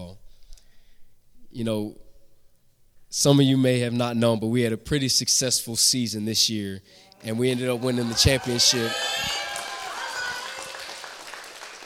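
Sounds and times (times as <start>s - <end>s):
speech: 1.6s - 2.0s, 3.1s - 9.3s
audience clapping: 7.3s - 11.8s.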